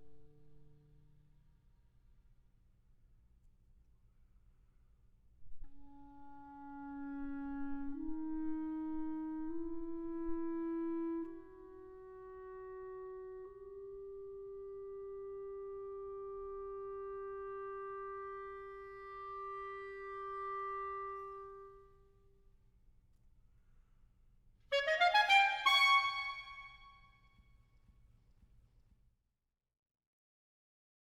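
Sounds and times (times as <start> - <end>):
clarinet sonata movement: 5.6 - 22.1, 24.7 - 27.1.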